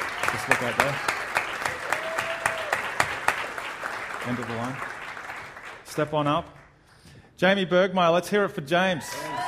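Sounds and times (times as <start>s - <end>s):
audience applause: 0.0s - 6.1s, 9.2s - 9.4s
speech: 0.5s - 1.1s, 4.2s - 4.9s, 5.9s - 6.6s, 7.4s - 9.3s.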